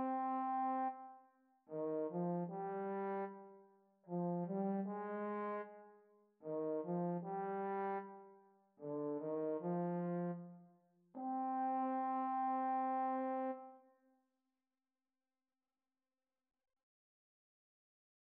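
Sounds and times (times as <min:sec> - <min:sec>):
trombone quartet: 0:00.0 - 0:00.9, 0:01.7 - 0:03.4, 0:04.1 - 0:05.7, 0:06.4 - 0:08.2, 0:08.8 - 0:10.4, 0:11.2 - 0:13.6.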